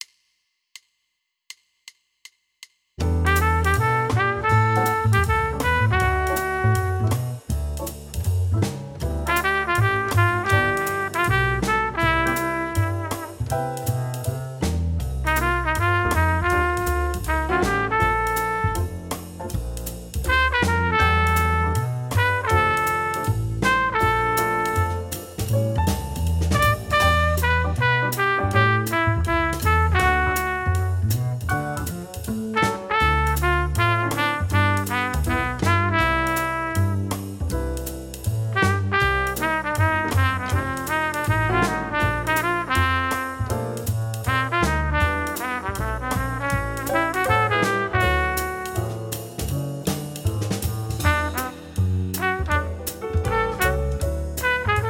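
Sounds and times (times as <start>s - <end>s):
jazz etude: 3.0s - 54.8s.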